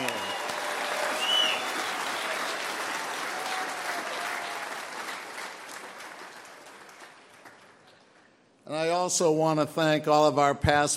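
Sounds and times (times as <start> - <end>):
audience applause: 0.0 - 8.0
speech: 8.8 - 10.9.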